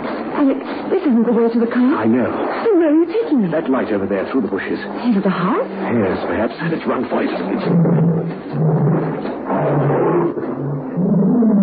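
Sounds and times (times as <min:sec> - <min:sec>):
speech: 0:00.4 - 0:11.6
tiger roaring: 0:07.4 - 0:11.6.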